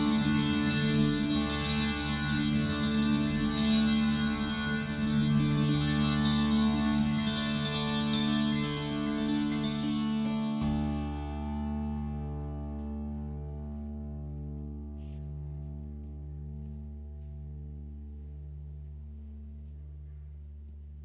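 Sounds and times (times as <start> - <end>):
flat-bodied tambura tuned a d d d played dynamically: 0.0 - 14.5.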